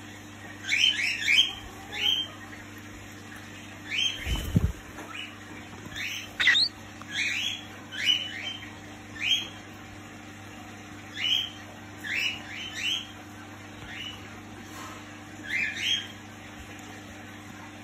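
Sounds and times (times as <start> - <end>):
electrical hum: 0.0 - 17.8
cockatiel chirping: 6.0 - 7.3.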